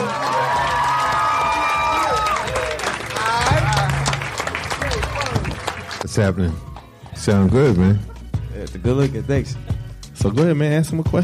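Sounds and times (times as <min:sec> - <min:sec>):
crowd applause: 0:00.0 - 0:07.0
high whistling cheers: 0:00.0 - 0:07.3
crowd whoops and shouts: 0:00.0 - 0:07.8
speech: 0:06.2 - 0:11.2.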